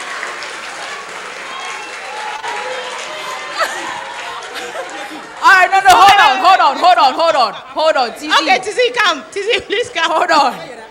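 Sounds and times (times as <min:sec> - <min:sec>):
audience clapping and cheering: 0:00.0 - 0:07.0
laughter: 0:03.1 - 0:08.8
speech: 0:06.0 - 0:10.8.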